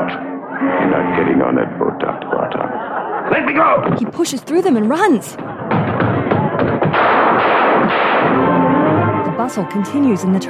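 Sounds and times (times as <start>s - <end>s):
speech: 0.6s - 5.6s, 9.5s - 10.4s
laughter: 0.8s - 6.6s
gunshots: 5.8s - 8.6s.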